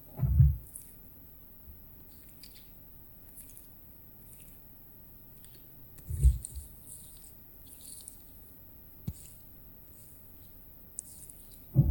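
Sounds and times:
right ear being picked with a bamboo ear pick: 0.1 - 0.7, 6.0 - 6.7.

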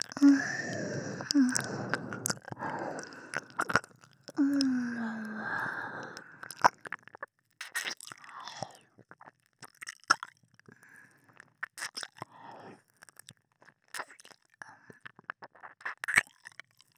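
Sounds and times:
ASMR ear licking sounds: 0.0 - 5.4, 6.1 - 8.4, 11.4 - 12.3, 13.1 - 16.4.

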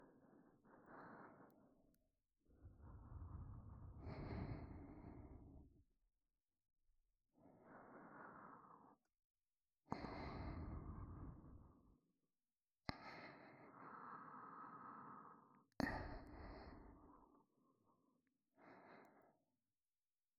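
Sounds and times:
breathing in both ears: 0.0 - 5.8, 7.4 - 9.1, 9.9 - 12.0, 12.9 - 19.5.

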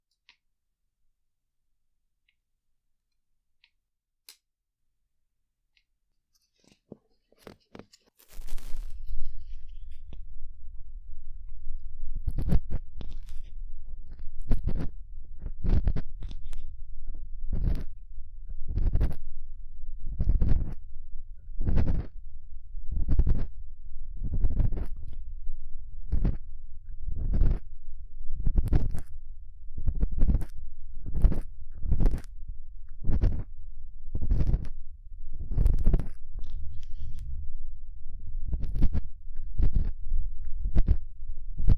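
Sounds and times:
careful realistic ear cleaning sounds: 8.3 - 37.6, 38.2 - 41.7.

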